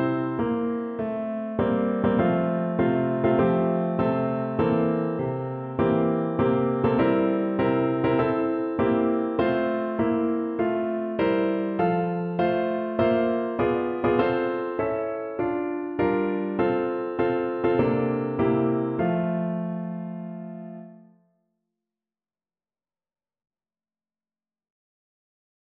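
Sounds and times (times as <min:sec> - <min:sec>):
piano piece: 0:00.0 - 0:21.1.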